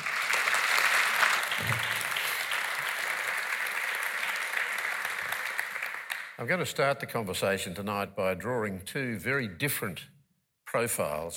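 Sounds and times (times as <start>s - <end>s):
audience applause welcoming the interviewers: 0.0s - 6.4s
speech: 6.4s - 10.1s, 10.8s - 11.3s.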